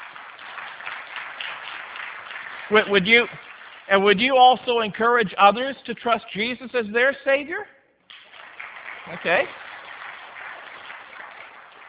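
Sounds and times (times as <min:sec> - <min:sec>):
audience applauding: 0:00.0 - 0:05.1, 0:08.1 - 0:11.8
speech: 0:02.7 - 0:07.8, 0:09.1 - 0:09.6.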